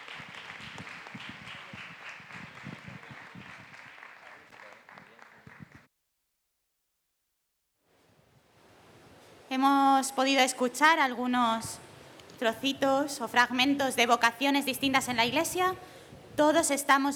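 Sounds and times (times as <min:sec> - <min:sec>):
crowd applauding: 0:00.0 - 0:05.9
speech: 0:09.6 - 0:11.8, 0:12.4 - 0:17.1.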